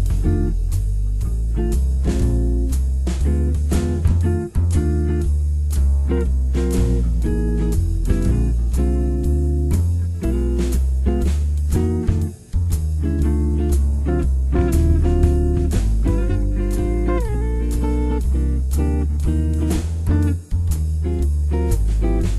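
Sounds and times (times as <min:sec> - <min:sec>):
blues backing track in F: 0:00.0 - 0:22.3.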